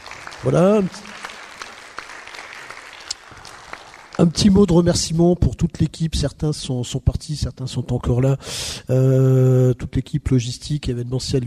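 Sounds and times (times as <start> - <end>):
audience applause: 0.0 - 4.6
speech: 0.4 - 1.2, 4.2 - 11.4.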